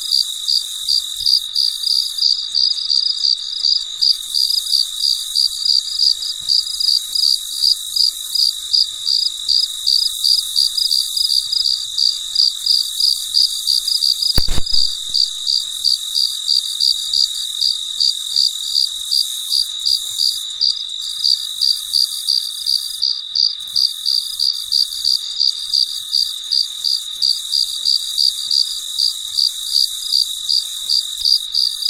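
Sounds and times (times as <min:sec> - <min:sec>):
cricket chirping: 0:00.0 - 0:31.8
high-pitched hiss: 0:14.4 - 0:15.7.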